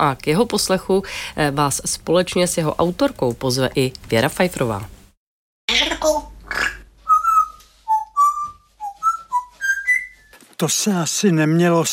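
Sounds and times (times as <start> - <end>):
speech: 0.0 - 5.0, 10.6 - 11.9
parrot whistling: 7.0 - 10.4.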